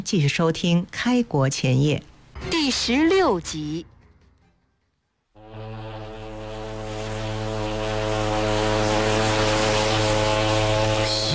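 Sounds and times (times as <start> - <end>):
speech: 0.0 - 3.9
passenger ship horn near a dock in Hong Kong: 5.4 - 11.3.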